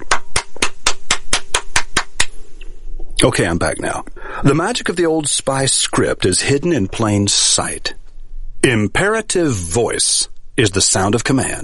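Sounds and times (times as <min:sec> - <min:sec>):
person clapping hands in applause: 0:00.0 - 0:02.4
speech: 0:03.2 - 0:08.0, 0:08.6 - 0:11.6.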